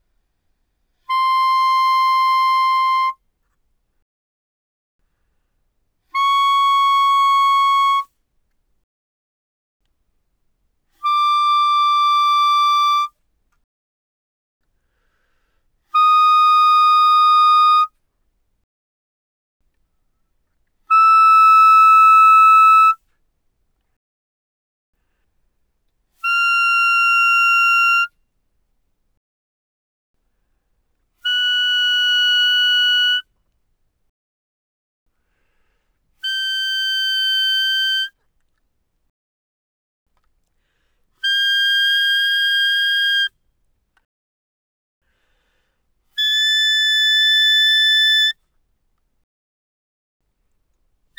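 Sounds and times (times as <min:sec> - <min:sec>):
loud B-flat clarinet notes from C6 to B6: 0:01.1 - 0:03.2, 0:06.1 - 0:08.1, 0:11.0 - 0:13.1, 0:15.9 - 0:17.9, 0:20.9 - 0:23.0, 0:26.2 - 0:28.1, 0:31.2 - 0:33.2, 0:36.2 - 0:38.1, 0:41.2 - 0:43.3, 0:46.2 - 0:48.3.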